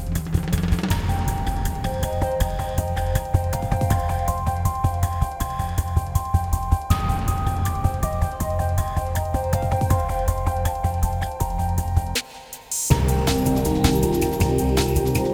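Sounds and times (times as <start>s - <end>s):
driving struggle breaks: 0.0s - 15.3s.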